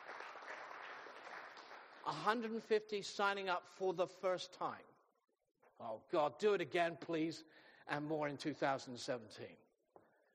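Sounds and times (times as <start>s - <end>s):
crowd applause: 0.0s - 2.2s
speech: 2.0s - 4.9s, 5.8s - 9.6s.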